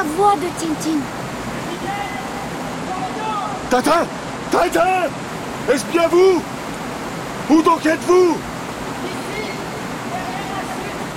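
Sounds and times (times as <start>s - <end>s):
speech: 0.0s - 1.2s, 3.7s - 6.5s, 7.5s - 9.2s
waterfall roaring: 0.0s - 11.1s.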